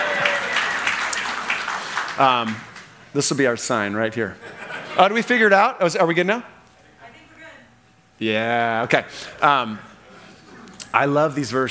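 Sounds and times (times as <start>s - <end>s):
audience applause in a church setting: 0.0s - 3.0s
speech: 2.2s - 6.5s, 8.2s - 9.9s, 10.9s - 11.7s
laughter: 4.3s - 5.6s.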